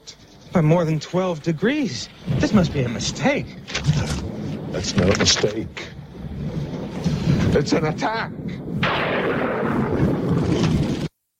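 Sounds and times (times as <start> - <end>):
speech: 0.5 - 5.9, 7.6 - 10.8
thunder crack and rolling rumble: 2.0 - 11.1.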